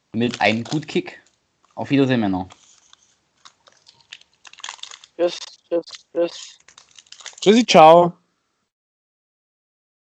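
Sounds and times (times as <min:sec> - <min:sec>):
speech: 0:00.2 - 0:01.2, 0:01.8 - 0:02.6, 0:05.2 - 0:06.6, 0:07.4 - 0:08.2
crunching and chewing of a Deutsche Bahn guest biscuit: 0:00.2 - 0:01.8, 0:02.5 - 0:07.6.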